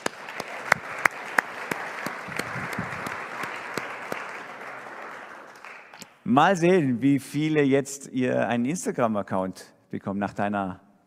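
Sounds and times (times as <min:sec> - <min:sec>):
audience applause: 0:00.0 - 0:06.1
speech: 0:06.3 - 0:10.8.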